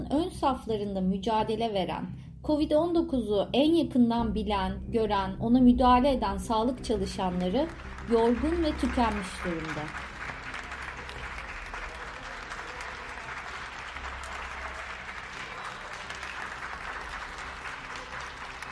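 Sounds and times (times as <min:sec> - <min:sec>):
speech: 0:00.3 - 0:10.1
applause for health workers: 0:06.9 - 0:18.7.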